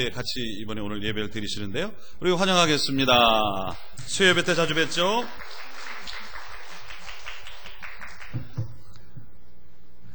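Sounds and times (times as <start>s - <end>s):
speech: 0.0s - 6.2s
audience applause: 4.2s - 9.0s.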